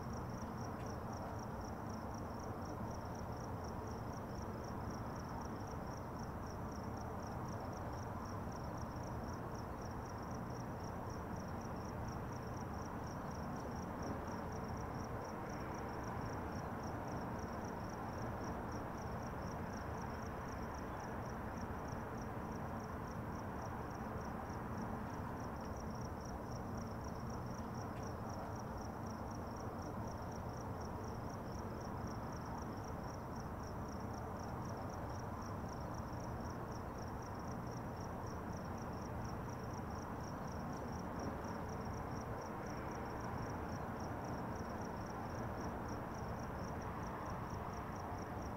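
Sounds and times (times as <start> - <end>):
night neighborhood ambience: 0.0 - 48.5.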